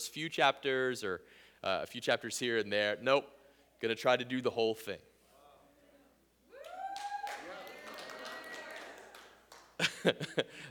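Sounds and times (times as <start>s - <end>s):
speech: 0.0s - 5.1s, 10.0s - 10.6s
audience cheering and clapping: 6.6s - 9.8s
laughter: 9.8s - 10.6s.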